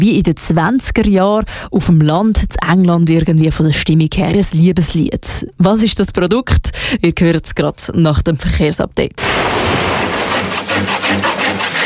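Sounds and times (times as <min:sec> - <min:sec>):
speech: 0:00.0 - 0:10.0, 0:10.8 - 0:11.8
hand saw cutting through wood: 0:09.2 - 0:11.8.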